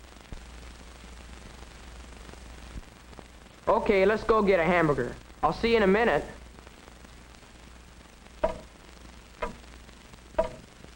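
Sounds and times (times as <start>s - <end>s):
faint room hum: 0.0s - 10.9s
speech: 3.7s - 6.4s
large hall clock ticking: 8.4s - 8.7s, 9.4s - 9.6s, 10.4s - 10.7s.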